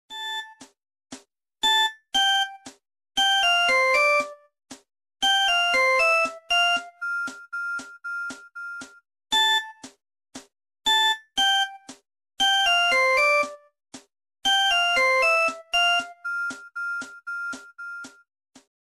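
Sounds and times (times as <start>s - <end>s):
exclusive ringtone: 0.1s - 0.7s, 1.6s - 4.5s, 5.2s - 9.9s, 10.9s - 13.7s, 14.5s - 18.2s.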